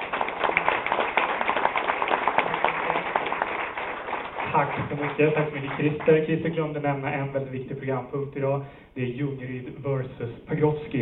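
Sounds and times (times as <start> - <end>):
audience applause: 0.0 - 6.4
speech: 4.6 - 11.0.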